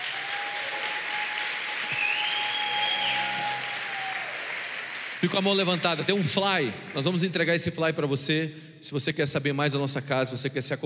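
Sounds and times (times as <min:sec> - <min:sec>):
audience applause: 0:00.0 - 0:07.2
high whistle-like note: 0:01.9 - 0:04.3
speech: 0:05.2 - 0:10.8.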